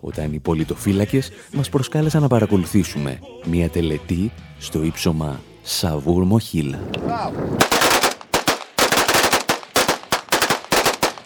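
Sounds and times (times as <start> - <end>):
speech: 0.0 - 7.9
automatic gunfire salute by rebels on the Saur-Mogila height in Donetsk: 7.5 - 11.2.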